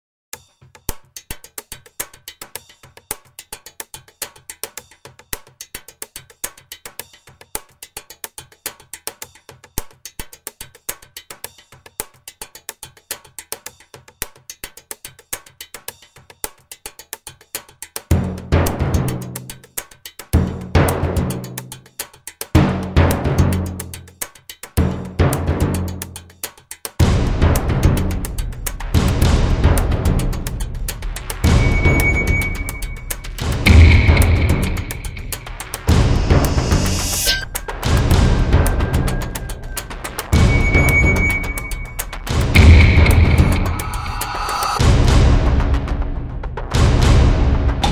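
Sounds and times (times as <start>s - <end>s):
danger drums: 18.1s - 19.4s, 20.4s - 21.8s, 22.6s - 24.0s, 24.8s - 26.2s, 27.0s - 47.9s.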